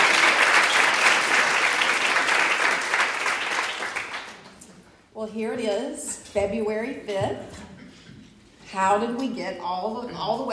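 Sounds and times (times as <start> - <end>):
crowd applauding: 0.0 - 4.6
speech: 5.2 - 7.6, 8.7 - 10.5.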